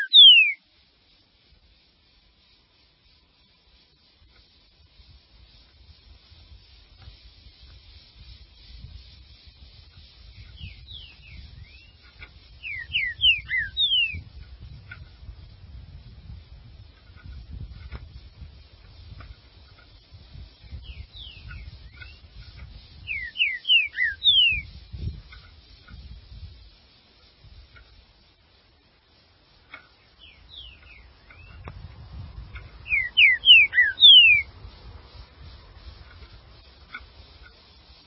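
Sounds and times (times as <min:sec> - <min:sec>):
green-winged saltator singing descending whistles: 0:00.0 - 0:00.7, 0:10.3 - 0:12.0, 0:12.6 - 0:14.2, 0:20.7 - 0:22.3, 0:23.0 - 0:24.7, 0:32.8 - 0:34.5.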